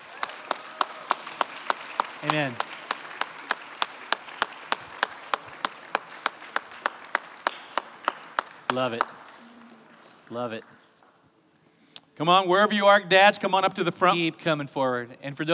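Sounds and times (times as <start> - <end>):
audience applause for fathers: 0.0 - 10.8
speech: 2.2 - 2.7, 8.7 - 9.2, 10.3 - 10.8, 12.2 - 15.5.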